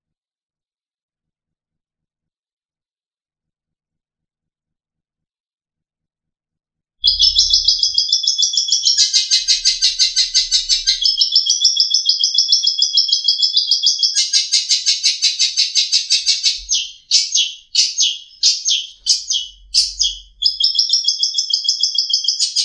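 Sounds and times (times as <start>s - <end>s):
long-tailed shrike trilling: 7.0s - 22.6s.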